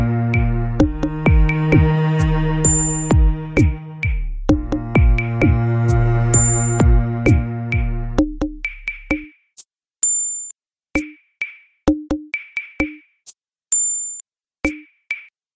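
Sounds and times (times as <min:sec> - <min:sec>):
calm oriental music: 0:00.0 - 0:08.2.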